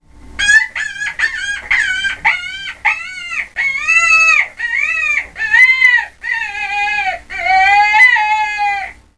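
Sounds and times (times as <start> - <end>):
rabbit squealing: 0.4 - 9.0.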